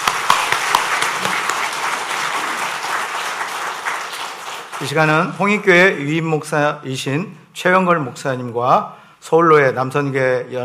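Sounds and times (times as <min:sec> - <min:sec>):
audience applause: 0:00.0 - 0:05.4
speech: 0:04.8 - 0:10.6.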